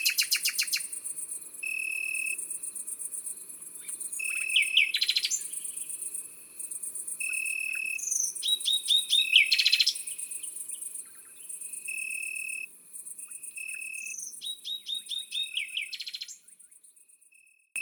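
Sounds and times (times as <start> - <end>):
great green bush-cricket stridulating: 0.0 - 15.1
several birds singing: 3.8 - 5.9, 7.2 - 11.6, 13.8 - 16.5.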